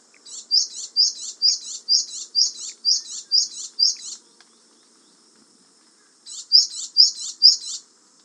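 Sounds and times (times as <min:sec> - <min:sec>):
Japanese tit giving high bright double chirps: 0:00.2 - 0:05.2, 0:06.3 - 0:07.9.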